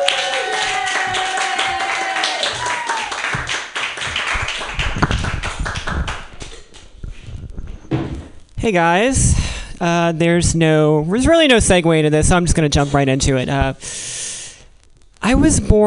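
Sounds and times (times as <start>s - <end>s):
people cheering: 0.0s - 6.3s
audience clapping for comedian: 0.0s - 7.0s
speech: 8.6s - 14.0s, 15.3s - 15.8s.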